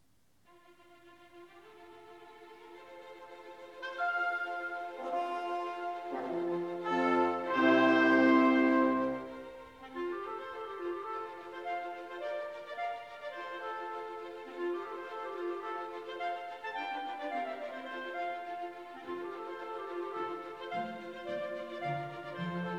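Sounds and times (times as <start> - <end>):
orchestra playing a symphony movement in A minor: 3.8 - 22.7.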